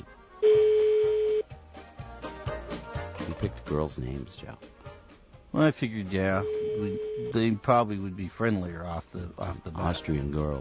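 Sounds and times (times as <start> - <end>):
telephone ringback tone on an outgoing call to Austria: 0.4 - 1.4, 6.4 - 7.4
speech: 3.7 - 4.8, 5.5 - 10.5.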